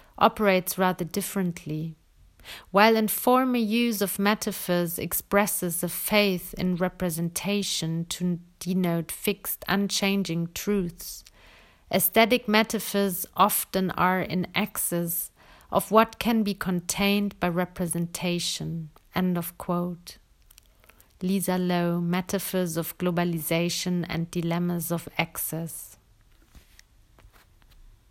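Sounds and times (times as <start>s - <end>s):
person speaking: 0.0s - 2.0s, 2.7s - 11.3s, 11.9s - 26.0s
person breathing: 2.4s - 2.7s, 11.3s - 11.9s, 15.4s - 15.7s.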